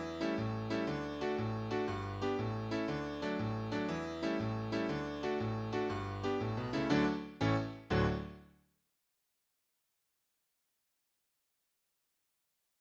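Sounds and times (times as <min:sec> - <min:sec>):
solo piano jig: 0:00.0 - 0:08.4.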